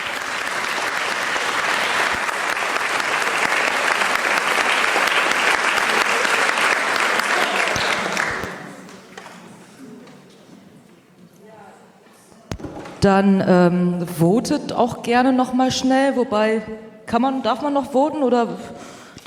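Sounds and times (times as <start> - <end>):
audience applause: 0.0 - 10.1
speech: 13.0 - 19.2.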